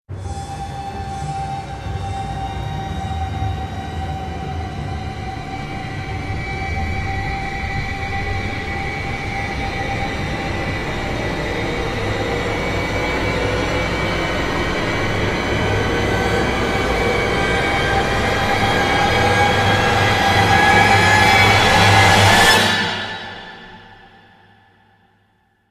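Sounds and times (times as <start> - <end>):
rising sound: 0.1 - 24.2.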